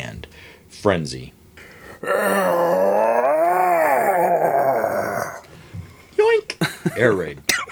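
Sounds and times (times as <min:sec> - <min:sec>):
speech: 0:00.7 - 0:01.4, 0:02.0 - 0:03.2, 0:06.9 - 0:07.5
voice imitating a monster's roar: 0:02.0 - 0:05.5.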